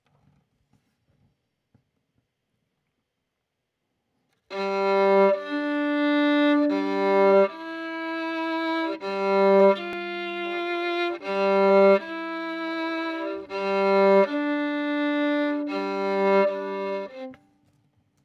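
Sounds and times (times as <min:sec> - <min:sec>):
violin: 0:04.5 - 0:17.4.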